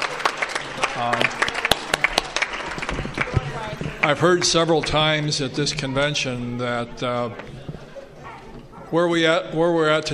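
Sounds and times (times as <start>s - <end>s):
round of applause: 0.0s - 5.1s
speech: 1.0s - 1.4s, 4.0s - 7.6s, 8.9s - 10.1s.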